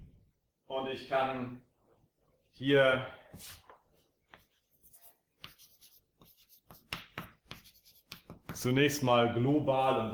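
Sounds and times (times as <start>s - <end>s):
speech: 0.8s - 1.7s, 2.6s - 3.6s, 8.6s - 10.1s
chalk or marker strokes on a board during a lecture: 3.4s - 8.7s.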